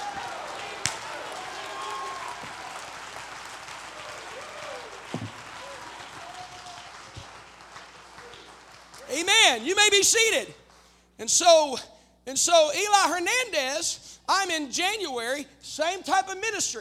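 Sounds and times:
shouts and whoops: 0.0s - 2.9s, 4.0s - 7.0s
crowd clapping: 0.0s - 11.0s
speech: 9.5s - 10.6s, 11.2s - 16.7s.

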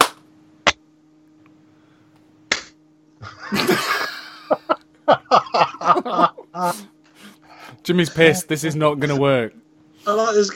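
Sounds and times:
hand claps to sync audio: 0.0s - 0.8s
snickering laughter: 3.2s - 6.8s
speech: 7.9s - 9.6s, 10.4s - 10.5s.

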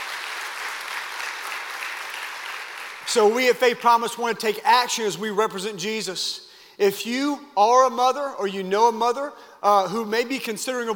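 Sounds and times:
audience applause: 0.0s - 3.2s
speech: 3.1s - 10.9s.

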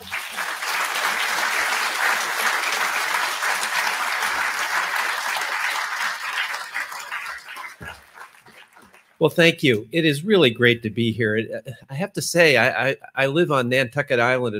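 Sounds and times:
audience applause welcoming a speaker to the stage: 0.0s - 9.2s
speech: 9.2s - 14.5s.

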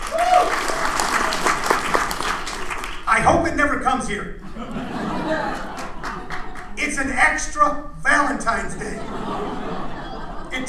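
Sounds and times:
audience applause: 0.0s - 3.1s, 5.3s - 6.8s
speech: 3.4s - 5.7s, 6.9s - 9.5s
laughter: 4.3s - 7.2s, 8.6s - 10.6s.

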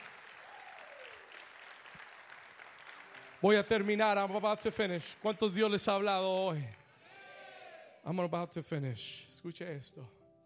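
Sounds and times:
audience applauding: 0.0s - 6.8s
speech: 3.4s - 6.8s, 8.0s - 10.2s.

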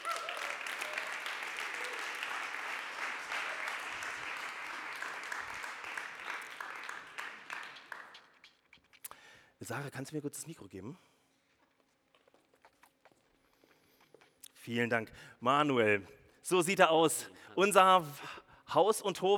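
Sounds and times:
audience applause: 0.0s - 8.4s
speech: 9.7s - 11.1s, 14.7s - 19.3s.

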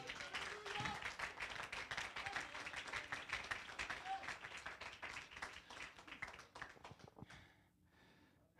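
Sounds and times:
audience clapping: 0.0s - 7.4s.

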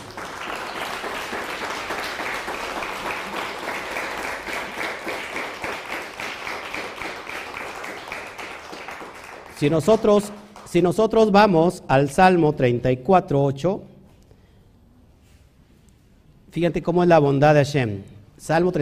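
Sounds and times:
audience applause: 0.0s - 10.4s
speech: 9.6s - 13.9s, 16.5s - 18.8s.

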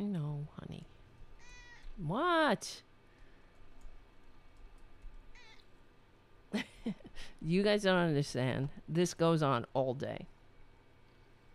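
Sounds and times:
cat meowing: 1.4s - 1.9s, 5.3s - 5.6s
speech: 2.0s - 2.9s, 6.5s - 10.3s.

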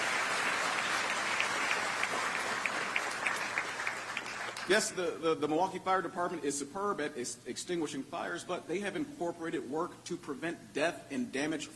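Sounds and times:
audience applause and cheering: 0.0s - 4.7s
speech: 4.7s - 11.7s.

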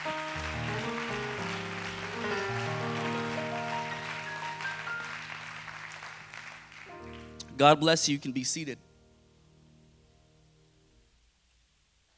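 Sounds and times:
audience clapping hands in praise: 0.0s - 7.6s
speech: 7.6s - 8.9s.

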